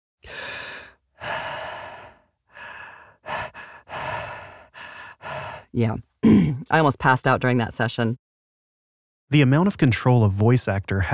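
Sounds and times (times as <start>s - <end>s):
heavy mouth breathing: 0.3s - 6.7s
speech: 5.7s - 8.2s, 9.3s - 11.1s.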